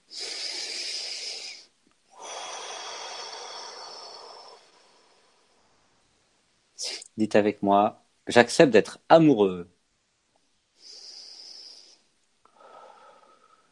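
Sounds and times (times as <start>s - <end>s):
deep breath: 0.0s - 5.8s, 10.8s - 13.7s
speech: 7.2s - 9.8s.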